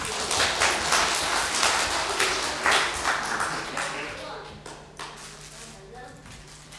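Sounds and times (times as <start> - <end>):
audience applause: 0.0 - 4.8.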